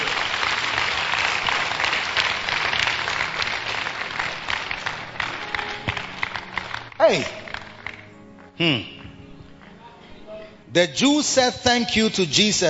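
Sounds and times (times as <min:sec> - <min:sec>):
audience clapping: 0:00.0 - 0:09.8
speech: 0:07.1 - 0:07.4, 0:08.6 - 0:08.9, 0:10.8 - 0:12.6.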